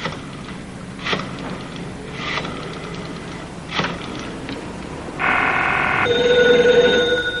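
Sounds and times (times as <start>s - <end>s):
telephone ringing in a cafeteria phone booth: 5.2s - 7.3s.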